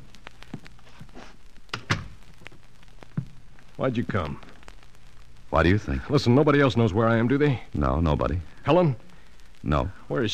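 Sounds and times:
door swinging shut: 0:01.8 - 0:02.2
speech: 0:03.8 - 0:04.5, 0:05.5 - 0:09.0, 0:09.6 - 0:10.3.

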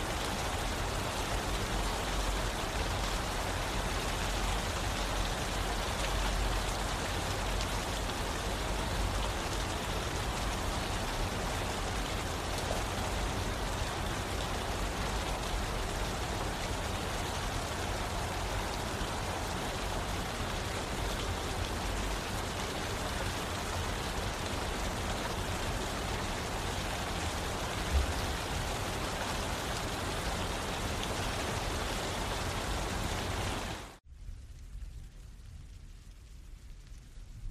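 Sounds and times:
rain falling: 0:00.0 - 0:37.4.

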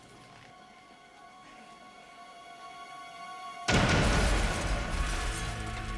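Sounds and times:
parcel bomb explosion: 0:03.7 - 0:05.9.

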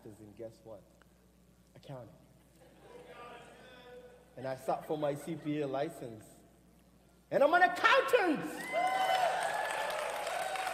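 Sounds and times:
speech: 0:00.1 - 0:01.0, 0:01.8 - 0:02.3, 0:04.4 - 0:06.4, 0:07.3 - 0:09.1
audience applause: 0:08.6 - 0:10.7.

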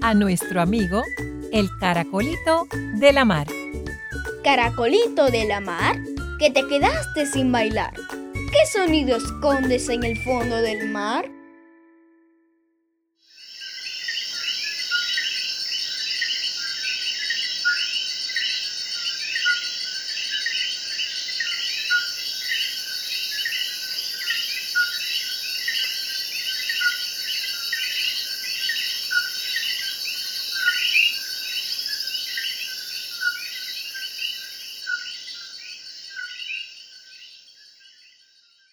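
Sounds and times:
speech: 0:00.0 - 0:11.4
coquí frog calling: 0:13.3 - 0:38.2.

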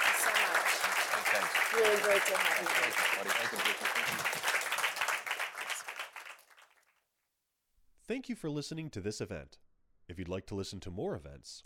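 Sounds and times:
crowd applauding: 0:00.0 - 0:06.8
speech: 0:01.4 - 0:04.5, 0:08.1 - 0:11.6.

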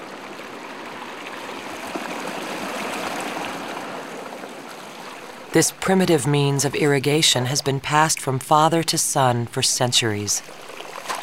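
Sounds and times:
mountain stream water flowing: 0:00.0 - 0:11.2
speech: 0:05.5 - 0:10.7.

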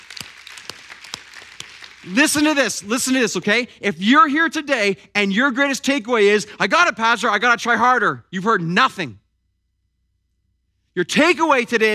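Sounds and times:
audience clapping: 0:00.0 - 0:03.4
speech: 0:02.0 - 0:09.2, 0:11.0 - 0:11.9.

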